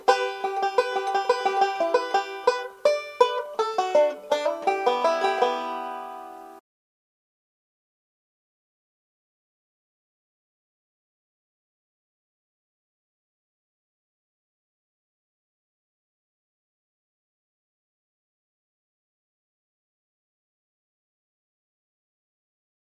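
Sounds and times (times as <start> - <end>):
banjo: 0.0 - 6.6.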